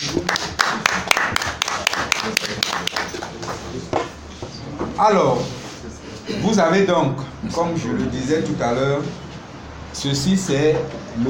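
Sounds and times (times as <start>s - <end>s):
audience applause: 0.0s - 3.5s
speech: 5.0s - 5.6s, 6.4s - 9.2s, 10.0s - 11.2s.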